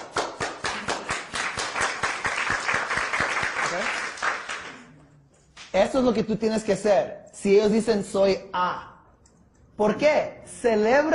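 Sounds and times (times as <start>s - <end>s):
applause: 0.0s - 4.9s
speech: 5.8s - 8.9s, 9.8s - 11.1s.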